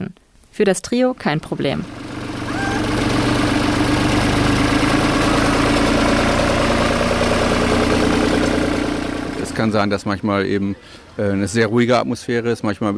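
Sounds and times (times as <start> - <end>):
speech: 0.6 - 2.0, 9.6 - 12.9
tractor diesel engine chugging while driving past: 1.6 - 10.9.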